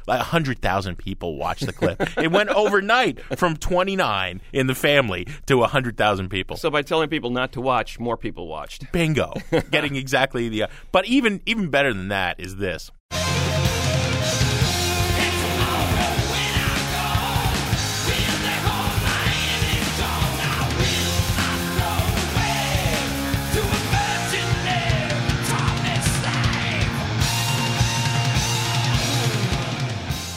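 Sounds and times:
speech: 0.1s - 13.0s
laughter: 1.6s - 3.5s, 9.3s - 10.0s
distorted guitars: 13.1s - 30.3s
loud heavy metal music: 13.1s - 30.3s
pounding drums: 13.2s - 30.3s
shouted vocals: 14.6s - 29.8s.

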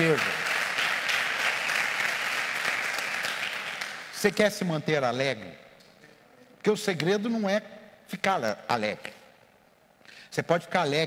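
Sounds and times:
audience applause: 0.0s - 4.1s
speech: 4.2s - 5.6s, 6.6s - 9.2s, 10.3s - 11.0s.

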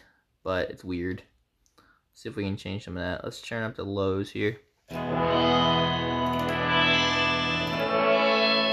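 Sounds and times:
speech: 0.4s - 1.3s, 2.2s - 5.8s
sustained electric guitar chord through effects pedal, metallic sitar-like tone: 4.9s - 8.7s.

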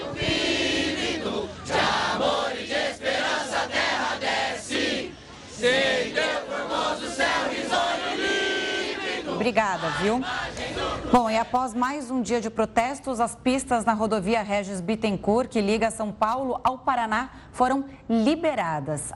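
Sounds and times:
protesting truckers singing the national anthem: 0.0s - 11.6s
speech: 9.5s - 19.1s.

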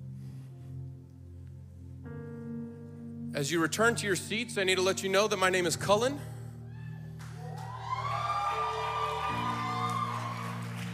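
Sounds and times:
speech: 3.4s - 6.4s
audience cheering: 7.2s - 10.9s.

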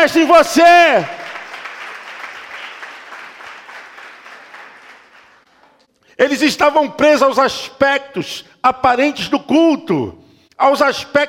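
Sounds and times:
speech: 0.0s - 1.2s, 6.2s - 11.2s
audience applauding: 0.0s - 5.9s.

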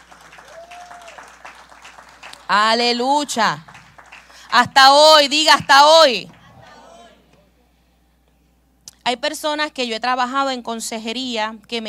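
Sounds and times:
crowd clapping: 0.0s - 6.5s
speech: 2.5s - 3.7s, 4.5s - 6.4s, 9.1s - 11.8s.

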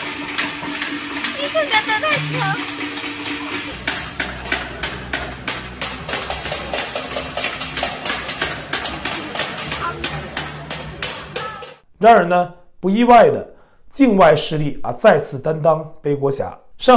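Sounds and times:
metal pots and pans being banged: 0.0s - 11.8s
speech: 1.5s - 2.9s, 12.0s - 16.9s.

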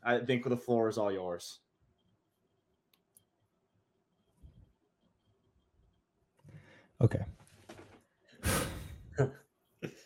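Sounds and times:
speech: 0.1s - 1.7s, 7.0s - 7.4s, 9.2s - 9.4s
big deliberate breath taken to calm down: 8.4s - 9.1s.

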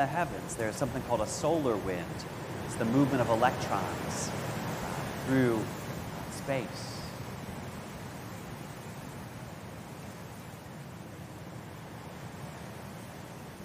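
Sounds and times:
speech: 0.0s - 4.5s, 5.3s - 5.8s, 6.4s - 6.9s
wind blowing: 0.0s - 13.6s.

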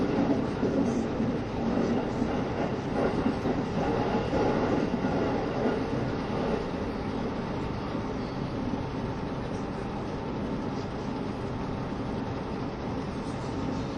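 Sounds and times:
KiHa 72 Yufuin no Mori train wheels rumbling and rattling: 0.0s - 13.9s.

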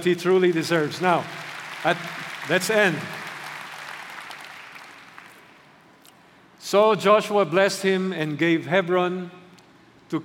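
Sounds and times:
speech: 0.0s - 3.2s, 6.7s - 9.4s
audience clapping: 0.0s - 5.8s.

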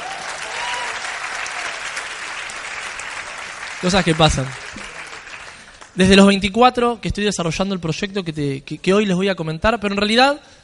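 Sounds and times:
audience applause: 0.0s - 6.0s
speech: 3.8s - 4.8s, 6.0s - 10.6s.

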